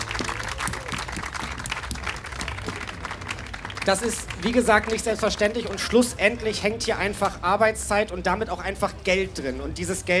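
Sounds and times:
audience applause: 0:00.0 - 0:05.6
speech: 0:03.9 - 0:10.1.

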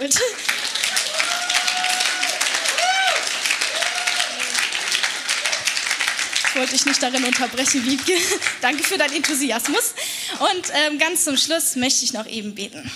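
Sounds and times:
speech: 0:00.0 - 0:00.4, 0:06.6 - 0:12.9
audience clapping: 0:00.0 - 0:10.9
laughter: 0:07.6 - 0:10.0.

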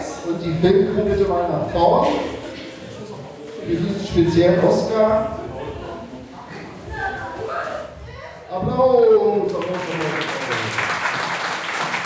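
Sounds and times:
murmur of voices: 0:00.0 - 0:10.8
speech: 0:00.3 - 0:02.4, 0:03.7 - 0:05.4, 0:08.5 - 0:10.3
audience applause: 0:09.5 - 0:12.0.

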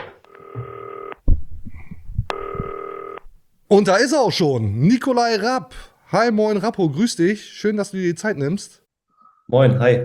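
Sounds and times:
telephone ringing through the earpiece: 0:00.0 - 0:01.2, 0:02.3 - 0:03.2
speech: 0:03.7 - 0:08.8, 0:09.5 - 0:10.0.

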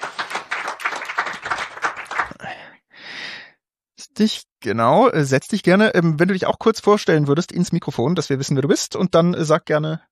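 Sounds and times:
audience applause for next guest: 0:00.0 - 0:02.4
speech: 0:04.2 - 0:10.1.

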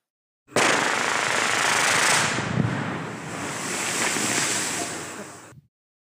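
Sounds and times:
rock blasting explosions through massive rock for laying cables: 0:00.5 - 0:05.5.

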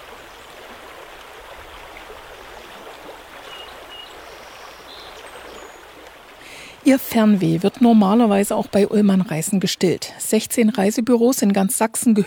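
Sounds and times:
babbling river: 0:00.0 - 0:12.2
speech: 0:06.9 - 0:12.2.

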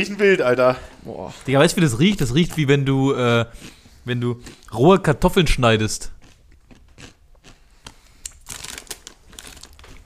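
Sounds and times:
speech: 0:00.0 - 0:06.2
person crunching and chewing a crispy snack: 0:06.1 - 0:10.0.

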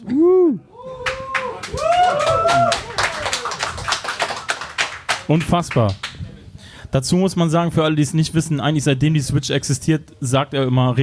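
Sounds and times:
applause: 0:01.0 - 0:06.2
speech: 0:05.3 - 0:06.1, 0:06.9 - 0:11.0.

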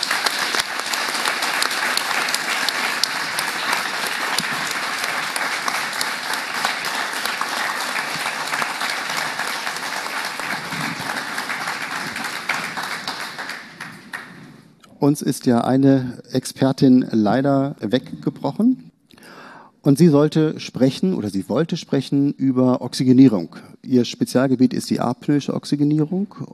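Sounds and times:
applause: 0:00.0 - 0:14.7
speech: 0:15.0 - 0:18.8, 0:19.8 - 0:26.5.

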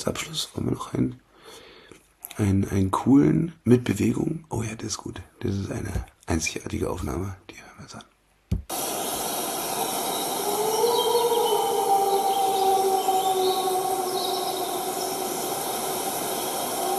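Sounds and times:
speech: 0:00.0 - 0:01.7, 0:02.4 - 0:08.1
wolf howling at mid distance: 0:08.8 - 0:16.9
robins singing: 0:09.7 - 0:16.9.

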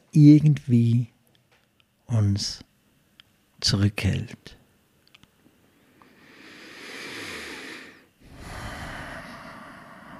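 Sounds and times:
speech: 0:00.1 - 0:01.1, 0:02.1 - 0:02.7, 0:03.6 - 0:04.6
deep breathing: 0:05.8 - 0:10.1.

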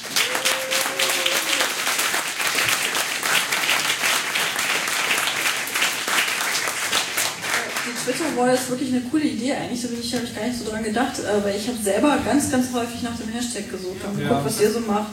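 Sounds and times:
audience applause: 0:00.0 - 0:08.7
speech: 0:08.2 - 0:15.1.

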